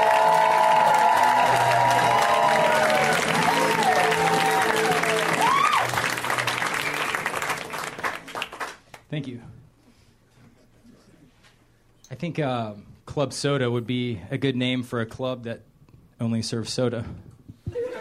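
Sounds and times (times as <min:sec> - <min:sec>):
comedy show audience applause and cheering: 0:00.0 - 0:08.9
speech: 0:12.2 - 0:17.3.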